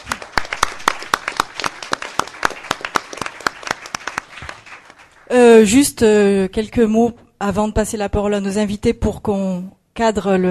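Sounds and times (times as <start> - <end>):
audience applause: 0.0 - 5.3
speech: 5.3 - 10.4.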